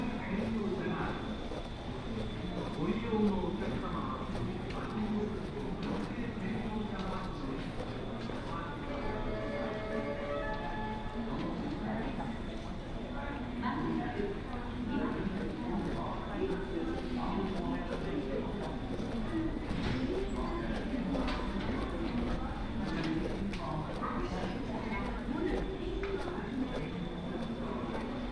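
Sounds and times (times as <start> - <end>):
footsteps in Osaka railway stations: 0.0 - 8.6, 15.4 - 28.2
crowd chatter in Osaka stations: 0.0 - 28.3.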